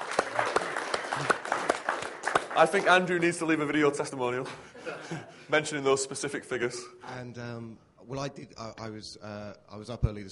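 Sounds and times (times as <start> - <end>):
seminar audience round of applause: 0.0 - 4.0
speech: 2.6 - 10.3
laughter: 4.5 - 5.6.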